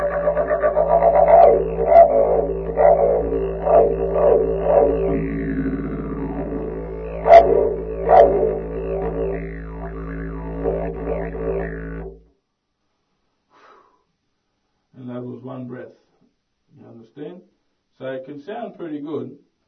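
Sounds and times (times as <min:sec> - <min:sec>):
didgeridoo lesson: 0:00.0 - 0:12.3.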